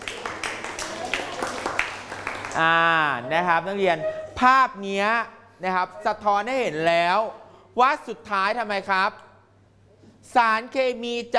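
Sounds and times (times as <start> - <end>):
students clapping hands: 0.0 - 3.2
speech: 2.6 - 9.2, 10.2 - 11.3.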